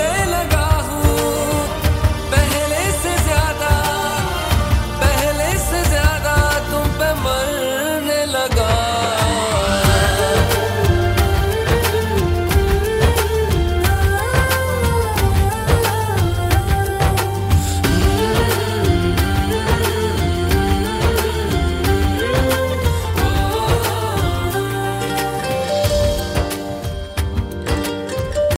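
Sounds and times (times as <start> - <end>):
Bollywood ringtone: 0.0 - 28.5.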